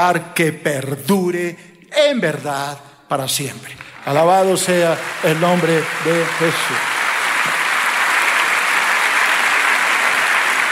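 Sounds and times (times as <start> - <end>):
speech: 0.0 - 7.0
audience applause: 3.8 - 10.6.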